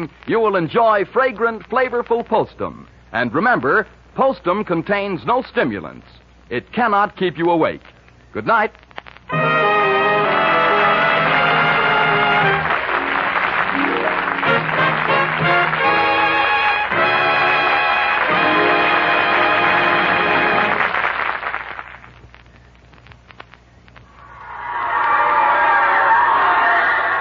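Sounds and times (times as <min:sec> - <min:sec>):
speech: 0:00.0 - 0:09.5
audience cheering: 0:09.3 - 0:21.8, 0:24.1 - 0:27.2
applause: 0:11.2 - 0:22.2.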